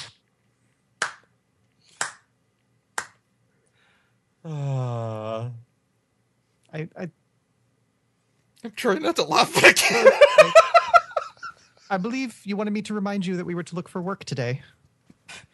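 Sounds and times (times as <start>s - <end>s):
slow clap: 1.0s - 1.3s, 1.9s - 2.3s, 3.0s - 3.2s
speech: 4.4s - 4.9s, 6.8s - 7.2s, 8.6s - 10.7s, 11.9s - 14.8s
laughter: 9.5s - 11.7s.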